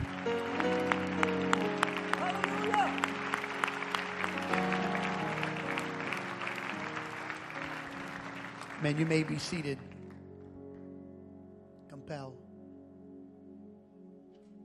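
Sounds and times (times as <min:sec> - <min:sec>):
audience clapping hands: 0:00.0 - 0:10.2
speech: 0:08.8 - 0:09.9.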